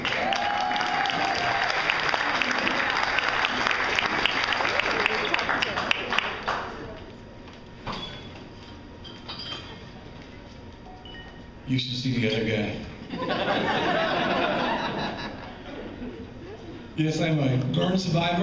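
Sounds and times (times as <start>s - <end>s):
audience applause: 0.0s - 7.0s
speech: 11.7s - 14.6s, 17.0s - 18.4s
laughter: 13.1s - 16.9s.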